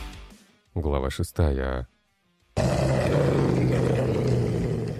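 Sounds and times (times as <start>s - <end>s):
speech: 0.7s - 1.9s
grey wolf growling: 2.6s - 4.9s.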